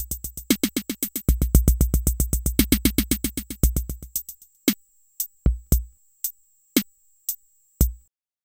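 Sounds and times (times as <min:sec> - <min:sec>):
drums with delay effect: 0:00.0 - 0:06.0, 0:07.8 - 0:08.1.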